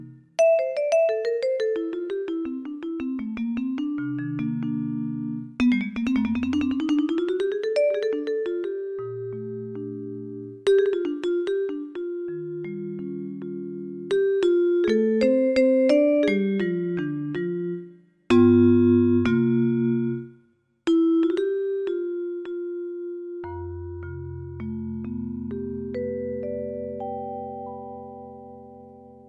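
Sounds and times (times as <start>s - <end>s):
jazz vibraphone: 0.0s - 20.3s, 20.9s - 29.2s.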